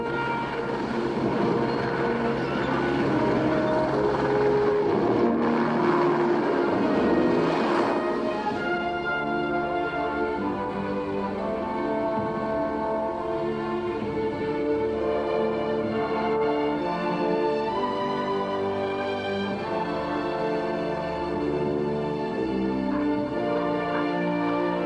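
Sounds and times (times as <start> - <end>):
helicopter flying northward: 0.0 - 24.8.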